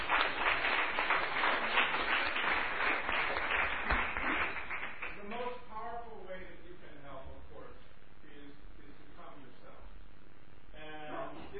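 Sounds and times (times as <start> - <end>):
audience applause: 0.0 - 5.2.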